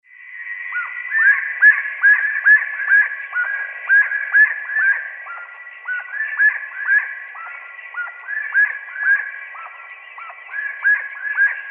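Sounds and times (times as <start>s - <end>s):
slaty-breasted wood rail calls: 0.1s - 11.6s.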